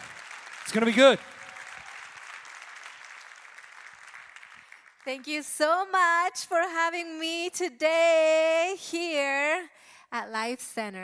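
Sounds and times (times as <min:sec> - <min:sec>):
audience applause: 0:00.0 - 0:05.1
speech: 0:00.7 - 0:01.4, 0:05.1 - 0:11.0.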